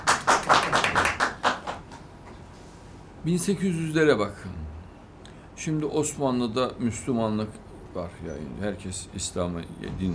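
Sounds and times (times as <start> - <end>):
audience clapping: 0.0 - 2.1
speech: 3.2 - 4.6, 5.6 - 10.1.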